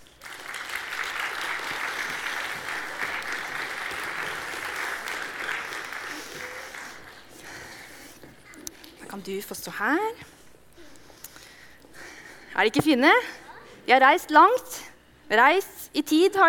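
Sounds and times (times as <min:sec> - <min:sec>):
audience applause: 0:00.0 - 0:07.8
speech: 0:09.2 - 0:10.3, 0:12.6 - 0:16.4.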